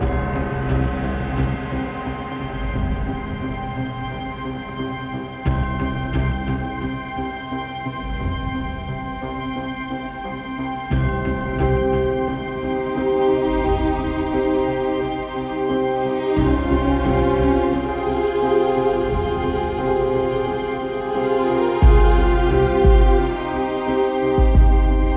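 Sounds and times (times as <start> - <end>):
winter ambient night loop: 0.0 - 25.1.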